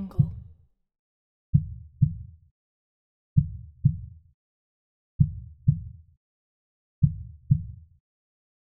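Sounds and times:
slow heartbeat: 0.0 - 0.4, 1.5 - 2.3, 3.4 - 4.1, 5.2 - 6.0, 7.0 - 7.8.

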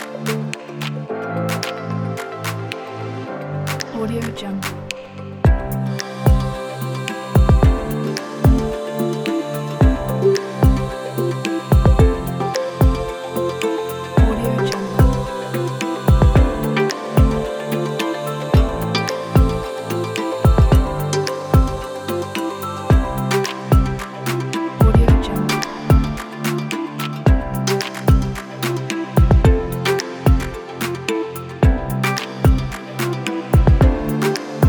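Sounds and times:
corporate ambient music: 0.0 - 34.6.

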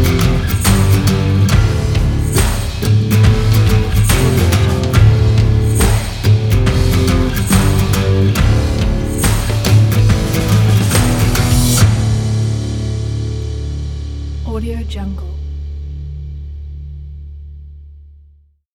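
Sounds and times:
western rock music: 0.0 - 14.4.

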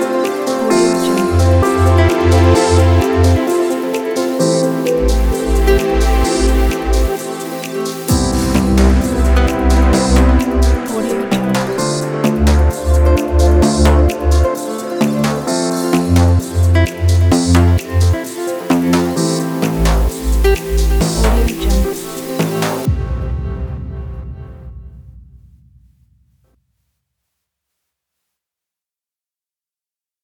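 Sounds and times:
inspirational corporate music kit: 0.0 - 23.6.

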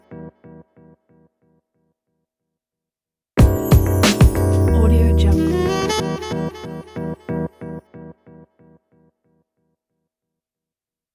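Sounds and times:
jazzy hip hop logo jingle: 3.4 - 7.3.

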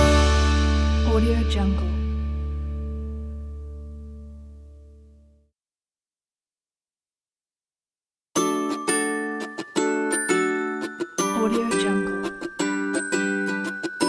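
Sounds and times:
happy upbeat ukulele music: 0.0 - 2.7, 8.4 - 14.0.

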